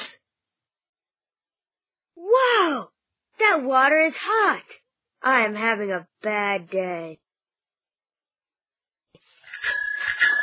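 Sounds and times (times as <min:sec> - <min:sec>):
speech: 0:03.5 - 0:07.2
bicycle bell ringing: 0:09.5 - 0:10.4.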